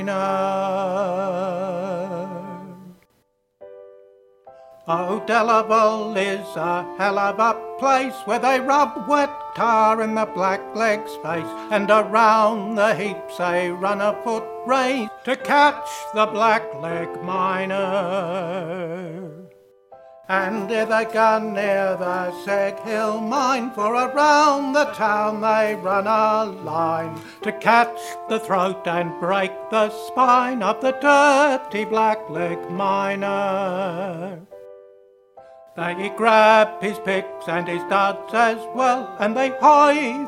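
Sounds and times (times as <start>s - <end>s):
soprano singing upper voice harmony: 0.0s - 3.1s, 4.8s - 19.6s, 20.2s - 34.6s, 35.8s - 40.2s.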